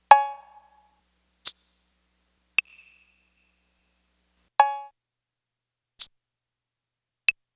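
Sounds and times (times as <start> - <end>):
percussion: 0.0 - 4.8.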